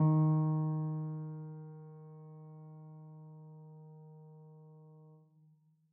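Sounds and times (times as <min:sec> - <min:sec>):
piano sampler: 0:00.0 - 0:05.1.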